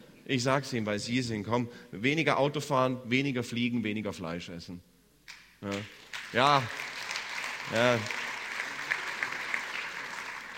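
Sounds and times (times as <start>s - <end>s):
speech: 0.3s - 4.9s, 5.6s - 6.8s, 7.7s - 8.2s
audience clapping for a speaker: 5.7s - 10.5s.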